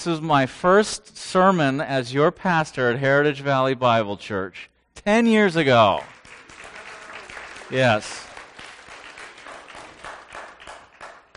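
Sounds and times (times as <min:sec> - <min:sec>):
speech: 0:00.0 - 0:06.2, 0:07.7 - 0:08.3
audience applause: 0:06.0 - 0:11.3.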